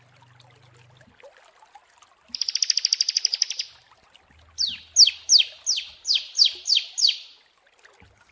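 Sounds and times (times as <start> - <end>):
prinia singing: 2.4 - 3.8, 4.6 - 7.4.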